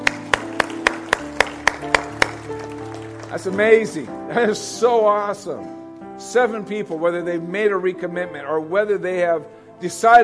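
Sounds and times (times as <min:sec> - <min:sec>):
audience clapping in unison: 0:00.0 - 0:04.0
speech: 0:03.3 - 0:10.2.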